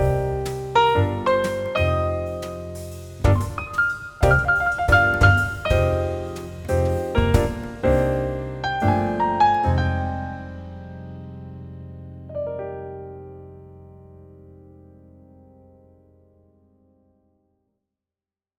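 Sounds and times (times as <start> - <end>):
jazzy blues music: 0.0 - 11.0.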